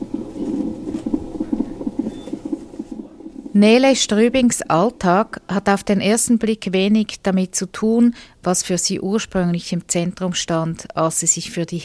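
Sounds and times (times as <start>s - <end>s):
fetal heartbeat on monitor: 0.0s - 7.0s
low hiss: 0.0s - 11.8s
speech: 3.6s - 11.8s.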